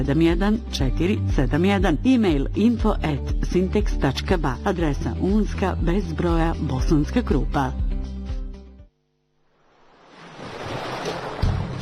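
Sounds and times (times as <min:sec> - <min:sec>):
speech: 0:00.0 - 0:07.8
sea waves: 0:09.6 - 0:11.8.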